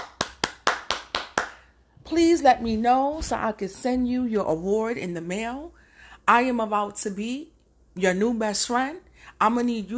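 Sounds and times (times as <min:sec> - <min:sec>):
one person applauding with hand claps: 0:00.0 - 0:01.7
speech: 0:02.1 - 0:09.9.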